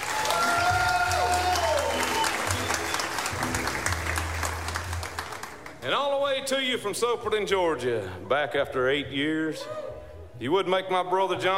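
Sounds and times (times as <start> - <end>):
audience applause for a fiddle player at a live show: 0.0 - 5.8
speech: 5.9 - 9.8, 10.4 - 11.5.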